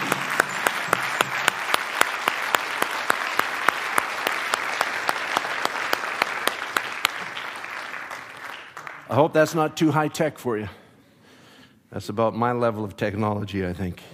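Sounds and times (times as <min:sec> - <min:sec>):
audience applause: 0:00.0 - 0:09.4
speech: 0:09.1 - 0:10.8, 0:11.9 - 0:14.1.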